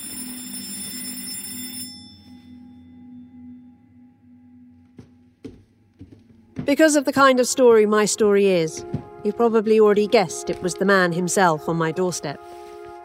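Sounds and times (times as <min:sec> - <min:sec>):
electric doorbell ringing: 0:00.0 - 0:02.9
low hum: 0:02.2 - 0:06.6
speech: 0:06.7 - 0:12.6.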